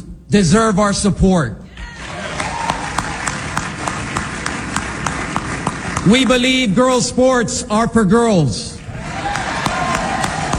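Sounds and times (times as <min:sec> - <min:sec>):
speech: 0:00.3 - 0:01.6, 0:06.0 - 0:08.8
crowd roaring: 0:01.7 - 0:06.1, 0:08.8 - 0:10.5
sharp claps or thumps: 0:01.7 - 0:06.9, 0:08.8 - 0:10.5.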